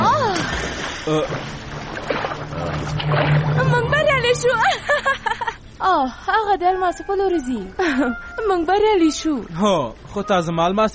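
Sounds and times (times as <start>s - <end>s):
splash of a leap from a boat into water: 0.0s - 4.8s
speech: 1.0s - 1.6s, 2.6s - 10.9s.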